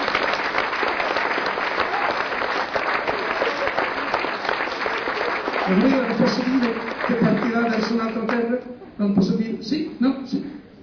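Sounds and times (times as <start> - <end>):
audience applause: 0.0 - 8.4
speech: 5.7 - 6.7, 7.9 - 10.6.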